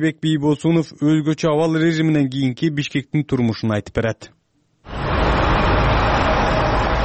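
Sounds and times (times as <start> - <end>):
speech: 0.0 - 4.4
traffic jam on the main streets of Bishkek: 4.9 - 7.0.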